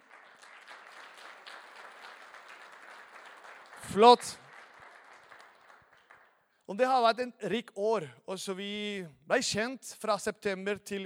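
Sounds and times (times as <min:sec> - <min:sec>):
audience applause: 0:00.0 - 0:06.4
speech: 0:03.9 - 0:04.4, 0:06.7 - 0:11.0.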